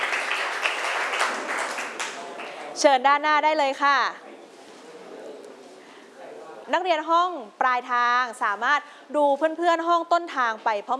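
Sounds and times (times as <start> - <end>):
students in a classroom clapping for a group: 0.0 - 2.8
speech: 2.8 - 4.3, 6.7 - 10.9.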